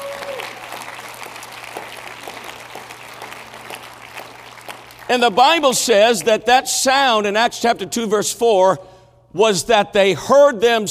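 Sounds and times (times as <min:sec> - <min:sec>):
audience clapping: 0:00.0 - 0:06.4
speech: 0:05.1 - 0:10.8.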